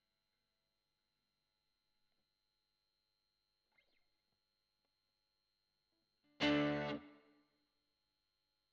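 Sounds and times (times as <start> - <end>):
guitar recorded with Royer microphone: 6.3 - 7.4.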